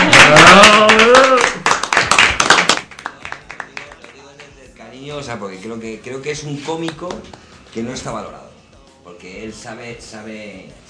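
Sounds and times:
crowd cheering: 0.0 - 2.8
audience applause: 0.0 - 3.9
speech: 5.3 - 8.5, 9.1 - 10.8.

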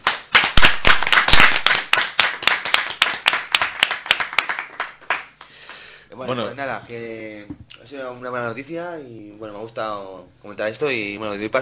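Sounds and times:
audience applause: 0.0 - 5.3
speech: 6.2 - 11.5.

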